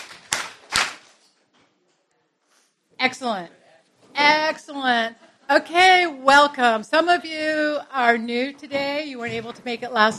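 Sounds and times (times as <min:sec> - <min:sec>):
audience clapping in unison: 0:00.0 - 0:01.1
speech: 0:03.0 - 0:03.6, 0:04.2 - 0:10.1.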